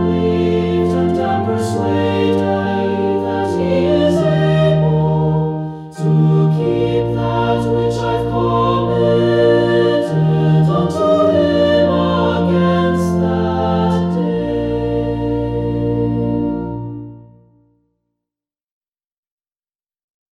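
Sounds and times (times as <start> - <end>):
choir singing a hymn: 0.0 - 17.4
organ: 0.0 - 17.7.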